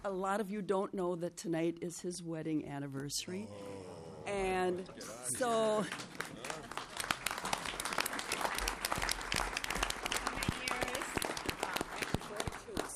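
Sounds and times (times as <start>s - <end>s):
speech: 0.0s - 6.5s
applause during a legislative session: 5.4s - 12.9s.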